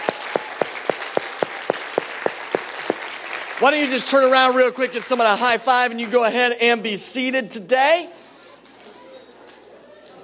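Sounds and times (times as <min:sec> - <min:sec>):
audience applause: 0:00.0 - 0:05.1
speech: 0:03.6 - 0:08.2.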